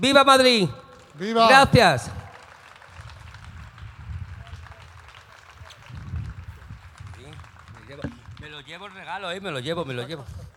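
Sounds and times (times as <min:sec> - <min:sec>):
speech: 0:00.0 - 0:02.2, 0:08.7 - 0:10.4
audience applause: 0:01.0 - 0:09.4.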